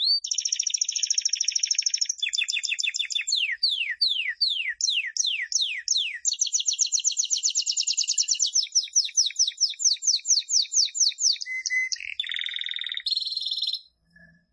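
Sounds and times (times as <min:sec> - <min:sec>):
canary singing persistently: 0:00.0 - 0:14.3.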